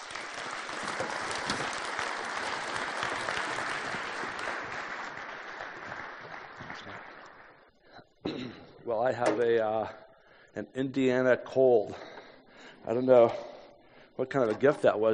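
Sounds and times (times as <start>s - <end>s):
audience applause welcoming a speaker at a community gathering: 0.0s - 7.7s
speech: 8.9s - 10.0s, 10.6s - 12.1s, 12.8s - 13.5s, 14.2s - 15.1s.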